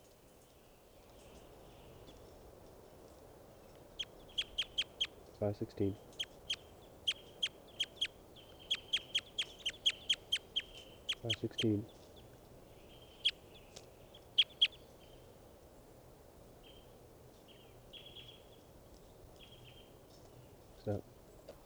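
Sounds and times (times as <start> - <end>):
faint steady hiss: 0.0 - 21.6
high-pitched bird chirps: 4.0 - 5.1, 6.2 - 11.7, 14.4 - 14.8
speech: 5.4 - 6.1, 11.2 - 12.0.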